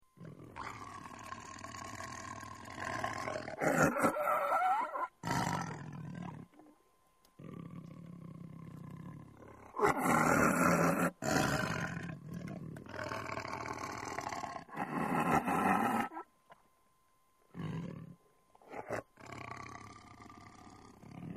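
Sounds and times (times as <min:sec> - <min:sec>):
tiger growling: 0:00.2 - 0:06.8, 0:07.4 - 0:16.3, 0:17.5 - 0:21.3.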